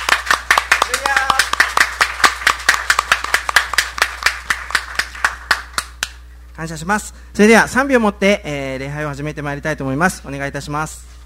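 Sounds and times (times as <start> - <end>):
audience clapping: 0.0 - 6.2
speech: 6.6 - 11.1.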